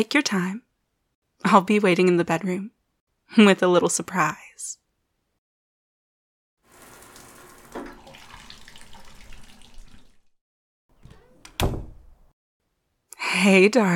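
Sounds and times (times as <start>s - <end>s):
speech: 0.0s - 0.6s, 1.4s - 4.8s, 13.4s - 13.9s
shower water running: 6.6s - 10.4s.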